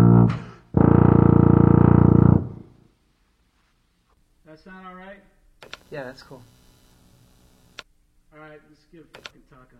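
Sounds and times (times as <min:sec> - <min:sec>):
tuba solo: 0:00.0 - 0:02.8.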